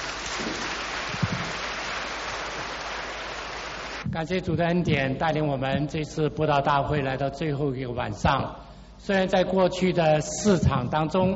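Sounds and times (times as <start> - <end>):
audience applause welcoming a speaker: 0.0 - 4.0
low thump: 1.1 - 1.5
speech: 4.1 - 11.3.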